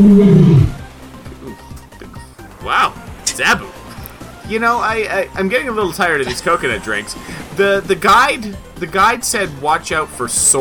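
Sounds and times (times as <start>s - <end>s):
big cat roaring: 0.0s - 0.8s
speech: 0.0s - 0.8s, 2.7s - 3.7s, 4.5s - 10.5s
laughter: 6.1s - 7.6s.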